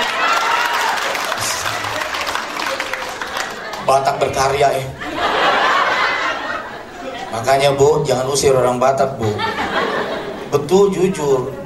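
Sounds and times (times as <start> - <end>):
scattered cheers: 0.0 - 3.5
audience applause: 0.0 - 4.0
laughter: 1.2 - 7.8, 9.1 - 10.7
speech: 3.9 - 5.4, 7.3 - 11.6.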